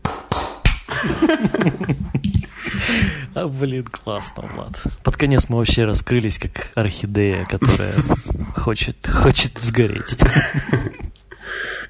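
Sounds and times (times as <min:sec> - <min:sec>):
hand claps: 0:00.0 - 0:01.0
laughter: 0:00.9 - 0:03.2, 0:07.5 - 0:08.5, 0:10.0 - 0:11.1
speech: 0:01.0 - 0:11.0.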